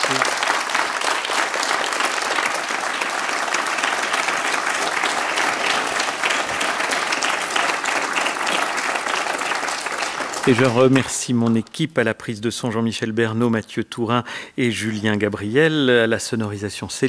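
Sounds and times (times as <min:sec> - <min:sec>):
concert audience applause thanking a musician: 0:00.0 - 0:11.7
speech: 0:10.5 - 0:17.0.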